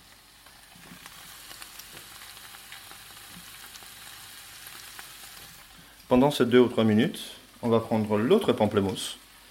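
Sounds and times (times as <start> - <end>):
chard ribs and leaves frying in pan: 0.0 - 9.4
speech: 6.1 - 9.2.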